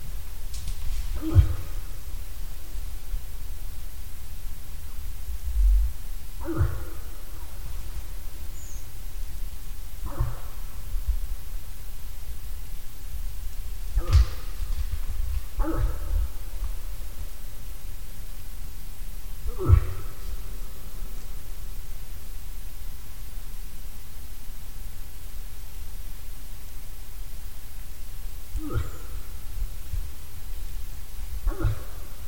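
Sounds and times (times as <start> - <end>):
low rumbling background: 0.0 - 32.2
moose grunting: 0.3 - 3.4, 6.3 - 11.9, 13.6 - 18.0, 19.3 - 21.9, 28.5 - 32.2.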